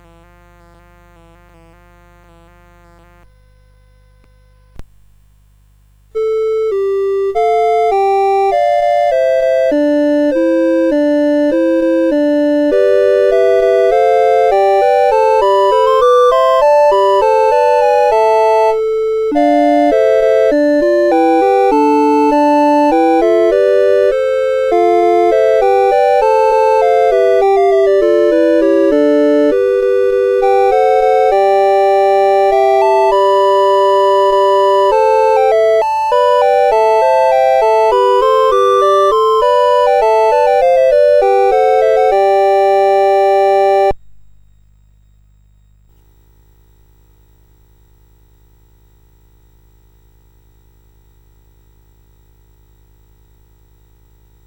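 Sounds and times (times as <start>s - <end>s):
CSG 8580 sound chip: 6.2s - 44.0s.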